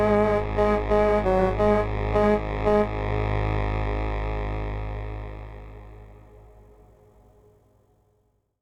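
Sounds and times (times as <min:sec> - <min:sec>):
PPG Wave Computer 360 synthesizer woodwind tone: 0:00.0 - 0:05.4.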